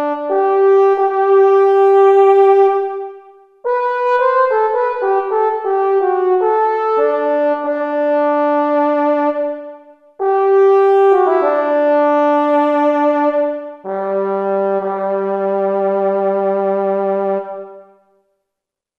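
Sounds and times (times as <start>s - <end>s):
solo trombone from Kurzweil K2000 Orchestral ROM: 0.0s - 18.0s.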